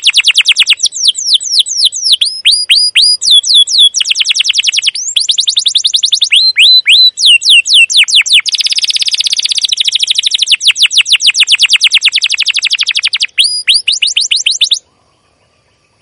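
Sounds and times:
canary singing lure song with buzzy trill, chirps and upslurred whistles: 0.0s - 14.8s.

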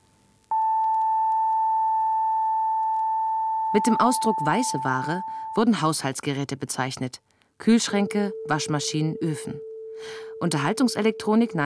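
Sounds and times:
high electronic test tone from right speaker: 0.5s - 5.8s, 7.9s - 11.6s
speech: 3.8s - 11.6s.

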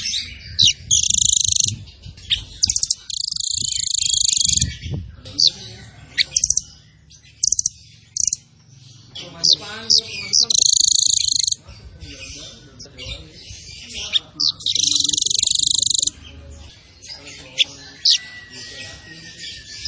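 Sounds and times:
zebra finch song with buzzy bursts and trills: 0.0s - 19.8s.

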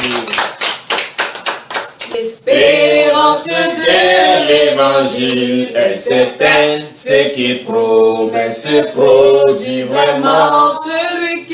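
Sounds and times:
church congregation clapping during worship: 0.0s - 2.2s, 3.9s - 5.3s
speech: 3.3s - 11.5s.

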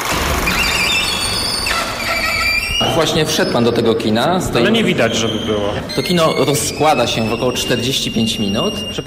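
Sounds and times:
heavily creaking tenement gate: 0.1s - 9.0s
speech: 2.9s - 9.0s.

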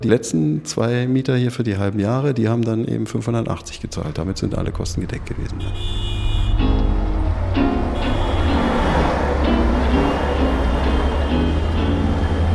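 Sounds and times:
speech: 0.0s - 6.7s
low rumble of S-Bahn and U-Bahn trains at Warschauer Straße in Berlin: 3.7s - 12.5s.

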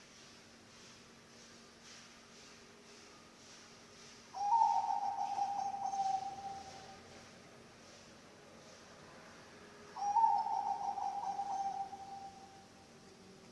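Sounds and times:
low hiss: 0.0s - 13.5s
zebra dove cooing: 4.4s - 7.1s, 10.0s - 12.6s.

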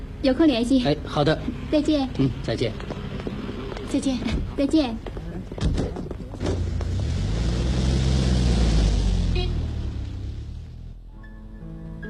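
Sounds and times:
speech: 0.2s - 3.0s, 3.9s - 5.1s
car engine rumbling as it pulls off: 6.3s - 11.1s.

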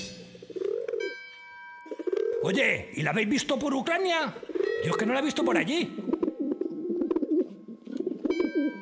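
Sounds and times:
dove cooing: 0.2s - 1.2s, 1.9s - 2.6s, 4.4s - 5.2s, 5.8s - 8.7s
speech: 2.4s - 6.0s.

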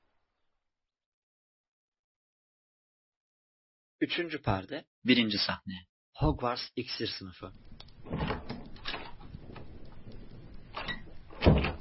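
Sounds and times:
speech: 4.0s - 8.3s
door opening: 7.9s - 11.7s.

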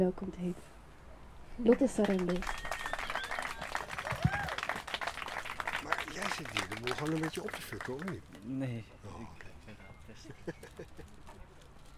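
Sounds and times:
speech: 0.0s - 0.8s, 1.6s - 2.7s, 6.4s - 9.4s, 10.1s - 11.4s
crowd voices: 1.6s - 11.9s
audience applause: 1.7s - 8.4s
laughter: 2.0s - 8.4s, 9.0s - 11.7s
rising whistles: 2.1s - 8.2s.

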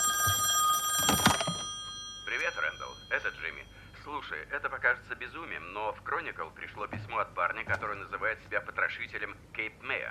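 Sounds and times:
telephone ringing: 0.0s - 4.6s
speech: 2.5s - 10.0s.

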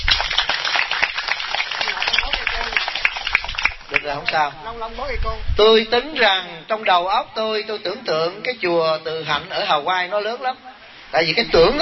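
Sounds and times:
round of applause: 0.0s - 4.4s
speech: 4.1s - 11.8s.

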